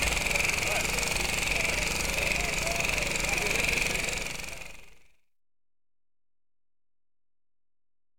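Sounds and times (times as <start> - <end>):
general construction site ambience: 0.0 - 4.7.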